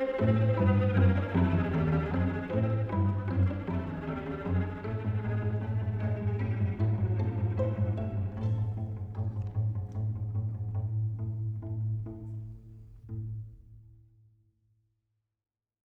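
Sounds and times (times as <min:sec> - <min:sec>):
string quartet playing in F major: 0:00.0 - 0:13.6.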